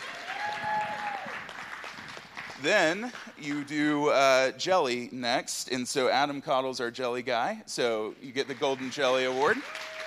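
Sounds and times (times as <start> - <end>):
audience applause: 0.0 - 3.8, 8.5 - 10.0
speech: 2.6 - 9.8.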